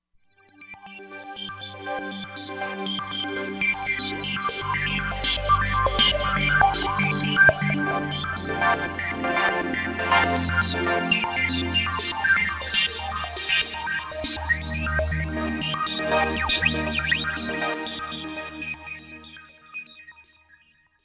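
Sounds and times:
Roland Fantom XR synthesizer: 0:00.5 - 0:20.3.

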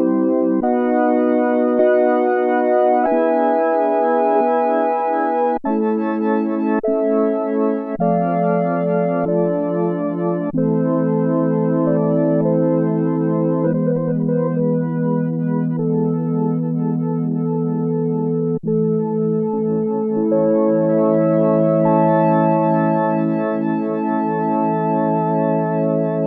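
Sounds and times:
hymn organ patch on Oberheim OB-8 synthesizer: 0:00.0 - 0:26.2.

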